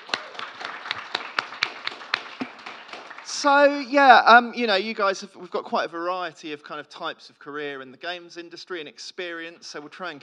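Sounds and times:
audience applause: 0:00.0 - 0:03.8
speech: 0:03.4 - 0:10.2.

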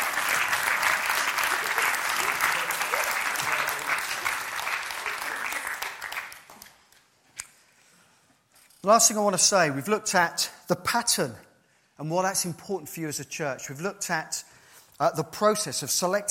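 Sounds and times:
crowd applauding: 0:00.0 - 0:07.0
speech: 0:08.8 - 0:11.4, 0:12.0 - 0:16.2.

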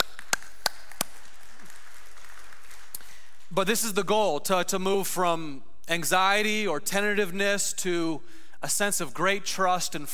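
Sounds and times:
audience clapping: 0:00.0 - 0:03.5
speech: 0:03.5 - 0:10.1.

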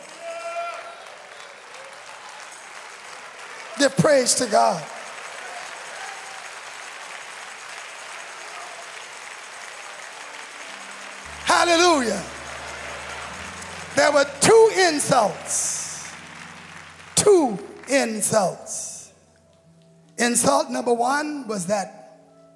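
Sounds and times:
audience clapping hands: 0:00.0 - 0:19.1
speech: 0:03.8 - 0:05.0, 0:14.0 - 0:15.7, 0:17.3 - 0:18.8, 0:20.2 - 0:22.0.

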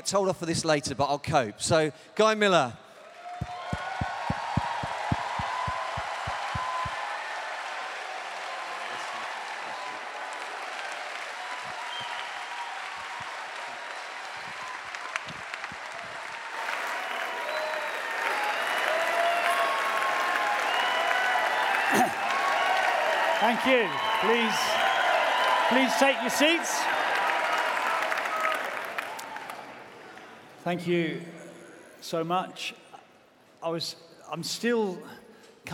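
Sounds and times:
speech: 0:00.0 - 0:02.8, 0:23.6 - 0:24.8, 0:25.7 - 0:27.0, 0:30.6 - 0:31.4, 0:32.0 - 0:32.8, 0:33.6 - 0:35.7
standing audience applause: 0:03.1 - 0:30.5.

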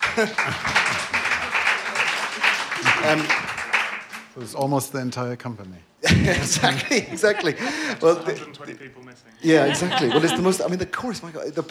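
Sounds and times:
audience applause: 0:00.0 - 0:04.4
speech: 0:00.2 - 0:01.1, 0:02.8 - 0:03.5, 0:04.4 - 0:11.7
laughter: 0:06.0 - 0:08.8, 0:09.4 - 0:10.7.

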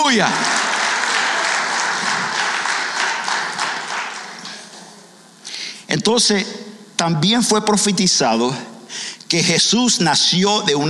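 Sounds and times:
loud audience applause: 0:00.0 - 0:05.0
speech: 0:00.1 - 0:00.4, 0:05.9 - 0:10.8.

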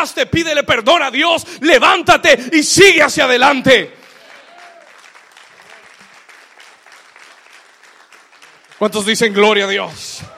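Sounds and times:
speech: 0:00.0 - 0:04.0, 0:08.8 - 0:10.3
crowd applause: 0:04.0 - 0:10.3.

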